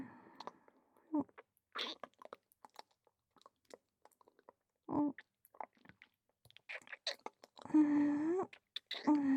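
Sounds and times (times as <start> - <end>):
kissing: 1.3 - 2.9, 6.5 - 7.7, 8.4 - 9.2.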